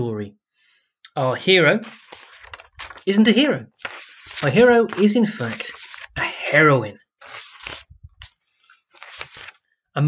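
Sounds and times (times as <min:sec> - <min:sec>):
speech: 0:01.2 - 0:02.2, 0:03.1 - 0:05.8, 0:06.5 - 0:07.4
riffling pages of a comic book: 0:01.8 - 0:03.1, 0:03.8 - 0:09.6.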